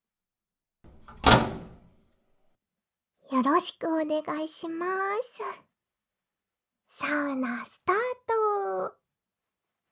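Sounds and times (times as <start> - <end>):
sauna door shutting with a heavy thunk: 0.9 - 2.0
speech: 3.3 - 5.7, 7.0 - 9.0.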